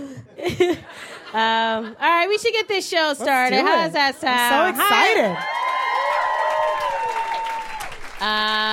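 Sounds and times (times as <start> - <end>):
speech: 0.6 - 5.5, 8.2 - 8.7
audience applause: 4.6 - 8.7.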